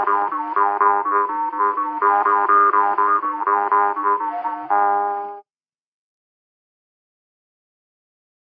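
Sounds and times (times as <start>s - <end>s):
jaw harp playing folk dance music: 0.0s - 5.4s.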